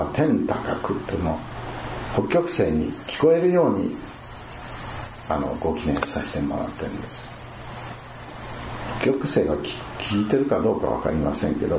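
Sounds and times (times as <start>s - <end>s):
speech: 0.0s - 1.5s, 2.1s - 4.2s, 5.3s - 7.3s, 9.0s - 11.7s
steady low hum: 0.0s - 11.7s
bell cricket trilling: 2.6s - 8.9s.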